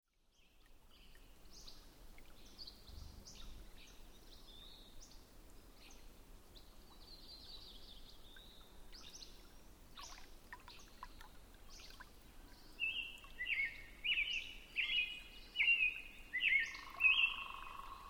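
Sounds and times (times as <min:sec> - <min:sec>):
robin singing warbled phrases: 0:12.8 - 0:18.0.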